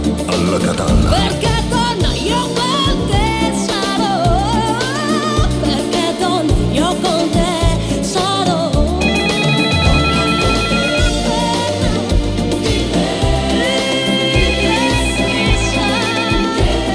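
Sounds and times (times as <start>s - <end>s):
loud song with full band and bass: 0.0s - 16.9s
speech: 0.3s - 2.6s
telephone ringing in high-pitched electronic pulses: 9.0s - 11.5s, 14.7s - 16.6s.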